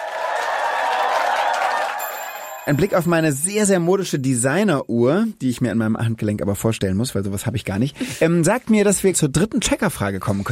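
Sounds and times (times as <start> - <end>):
studio audience applause: 0.0 - 3.1
speech: 2.6 - 10.5.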